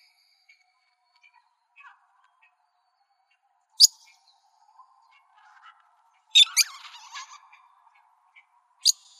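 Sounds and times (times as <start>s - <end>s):
parrots giving harsh raspy screeches: 6.4s - 7.4s.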